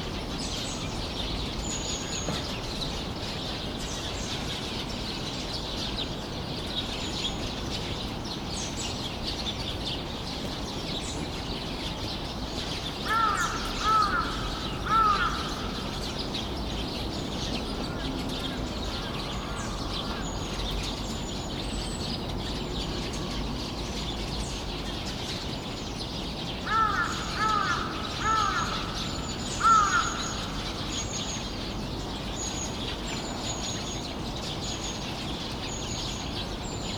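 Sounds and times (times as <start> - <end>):
flock of birds twittering: 0.0 - 36.9
birds harsh hoarse cawing calls: 26.7 - 30.8.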